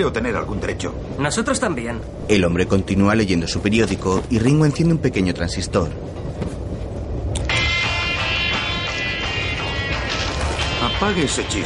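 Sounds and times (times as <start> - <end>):
speech: 0.0 - 6.2, 10.8 - 11.6
train carriage rolling on rails: 0.0 - 7.3, 9.6 - 11.6
sustained high-pitched whine: 7.4 - 11.6.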